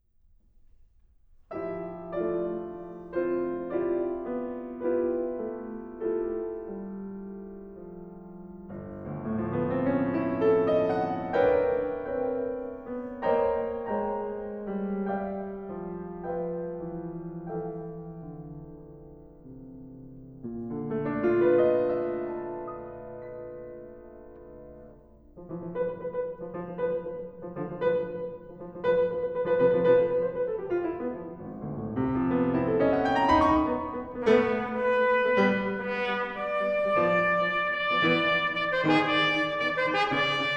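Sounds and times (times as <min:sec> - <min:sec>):
piano: 0:00.0 - 0:40.5
trumpet: 0:33.4 - 0:40.5.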